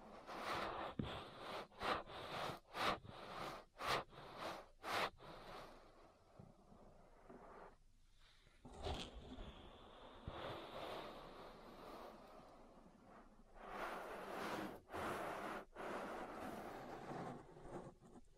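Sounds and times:
ear massage rubbing and brushing: 0:00.0 - 0:05.8, 0:10.4 - 0:18.3.

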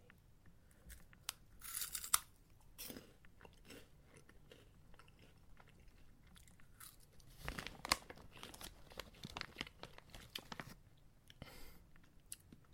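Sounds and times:
crunchy bites and chewing of snacks: 0:00.7 - 0:12.6
plastic snack packaging crinkling and tearing: 0:07.1 - 0:10.8.

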